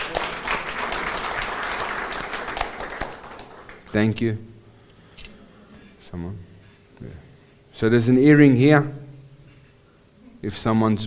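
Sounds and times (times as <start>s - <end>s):
audience applause: 0.0s - 4.0s
speech: 3.9s - 4.5s, 6.1s - 9.0s, 10.4s - 11.0s.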